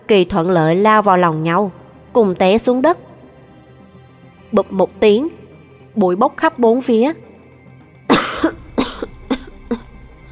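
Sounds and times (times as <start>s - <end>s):
speech: 0.1s - 3.1s, 4.5s - 5.4s, 6.0s - 7.3s
person coughing from choking on dust: 8.1s - 10.0s.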